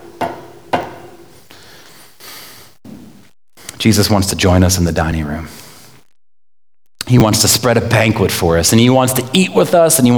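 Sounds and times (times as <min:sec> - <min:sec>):
knocking on a wooden door: 0:00.0 - 0:01.4
speech: 0:03.8 - 0:05.6, 0:07.1 - 0:10.1.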